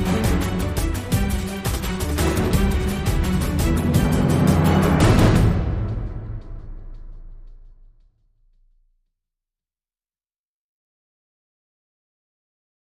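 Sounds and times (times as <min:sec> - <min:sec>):
energy tension music mix: 0:00.0 - 0:08.2.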